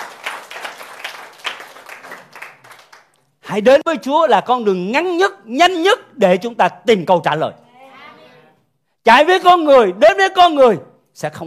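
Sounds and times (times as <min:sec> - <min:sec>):
audience applauding: 0:00.0 - 0:03.2
speech: 0:03.5 - 0:07.6, 0:09.0 - 0:11.4.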